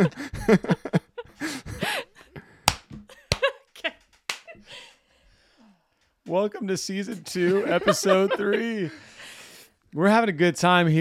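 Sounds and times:
speech: 0.0s - 1.0s, 6.3s - 9.1s, 10.0s - 11.0s
wordless vocal sounds and laughter-like voices: 0.0s - 9.8s
hand claps: 2.6s - 3.6s, 4.2s - 4.6s.

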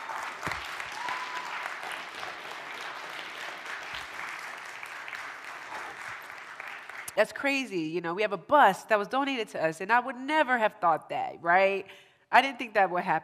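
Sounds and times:
audience applause and clapping: 0.0s - 7.1s
speech: 7.2s - 13.2s.

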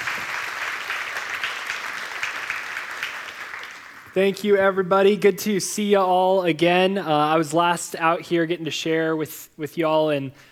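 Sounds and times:
audience applause welcoming a guest teacher at a morning gathering: 0.0s - 4.2s
speech: 4.2s - 10.5s.

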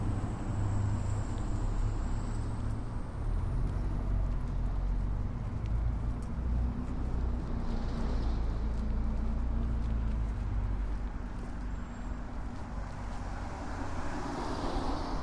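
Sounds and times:
passing traffic rumble in Marpole: 0.0s - 15.2s
vehicles swishing past: 6.8s - 10.8s, 12.1s - 15.2s.

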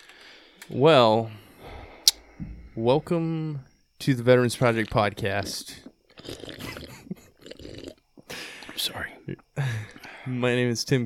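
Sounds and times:
speech: 0.7s - 1.4s, 2.4s - 6.6s, 10.3s - 11.0s
wet slurping sips of a drink: 4.6s - 8.0s.

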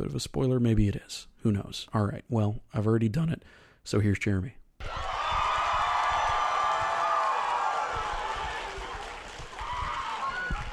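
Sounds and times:
speech: 0.0s - 5.2s
audience cheering and whooping at a Fan Expo Canada game show: 4.8s - 10.7s.

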